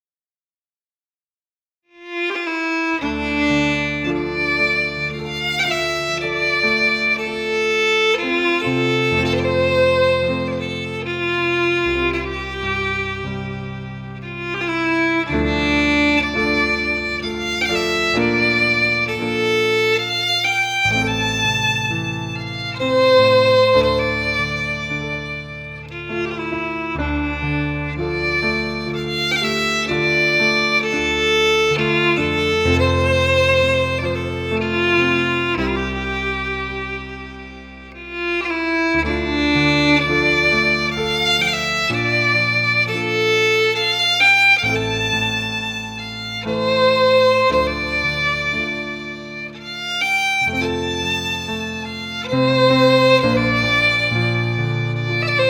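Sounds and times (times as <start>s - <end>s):
fiddle playing a lament: 1.9s - 55.4s
piano playing a lament: 1.9s - 55.4s.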